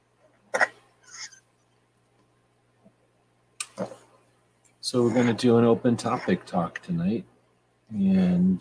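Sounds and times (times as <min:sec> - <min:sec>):
faint steady low hum: 0:00.0 - 0:08.6
puppy coughing and dry-heaving: 0:00.5 - 0:01.4
speech: 0:03.8 - 0:04.0, 0:04.9 - 0:07.3, 0:07.9 - 0:08.6.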